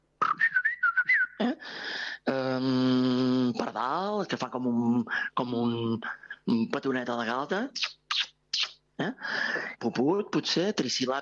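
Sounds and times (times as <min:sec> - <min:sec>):
person whistling blackbird-like phrase: 0:00.2 - 0:01.5
speech: 0:01.4 - 0:07.9, 0:09.0 - 0:11.2.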